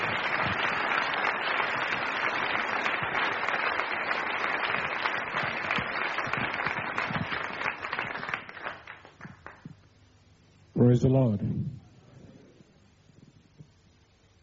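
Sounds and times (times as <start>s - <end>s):
audience applauding to welcome a professor: 0.0s - 9.8s
speech: 10.8s - 11.8s.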